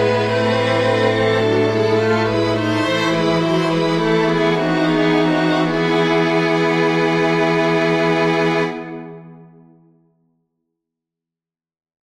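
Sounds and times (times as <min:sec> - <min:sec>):
string quartet: 0:00.0 - 0:09.7.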